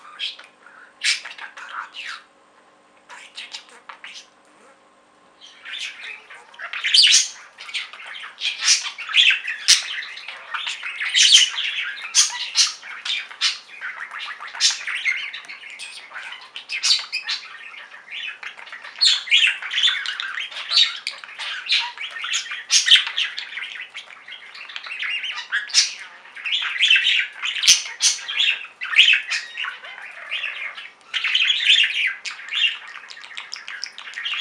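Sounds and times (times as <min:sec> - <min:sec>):
budgerigar chattering: 0:00.0 - 0:02.3, 0:03.1 - 0:04.4, 0:05.4 - 0:34.3.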